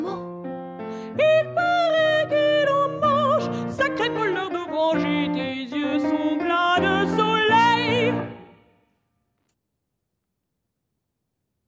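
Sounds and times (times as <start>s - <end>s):
piano: 0.0s - 8.8s.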